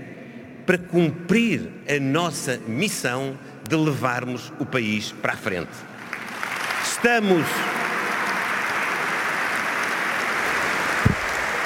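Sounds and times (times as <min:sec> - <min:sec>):
speech: 0:00.7 - 0:05.9, 0:07.0 - 0:07.9
delegates applauding: 0:06.0 - 0:11.6.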